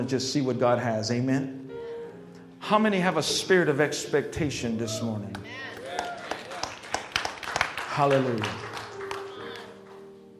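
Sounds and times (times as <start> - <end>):
speech: 0.0 - 1.6, 2.6 - 5.7, 8.0 - 8.7
a few people clapping hands: 5.3 - 10.1.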